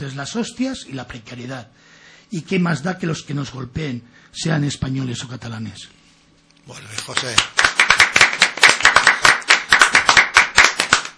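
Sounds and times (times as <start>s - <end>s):
speech: 0.0s - 6.0s, 6.6s - 7.6s
audience applause in a small room: 7.0s - 11.1s.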